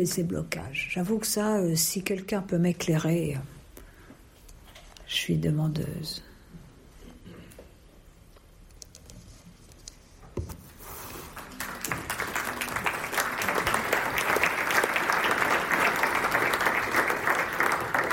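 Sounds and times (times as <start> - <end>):
speech: 0.0 - 3.6, 5.1 - 6.3
audience applause after a conference talk: 11.2 - 18.1.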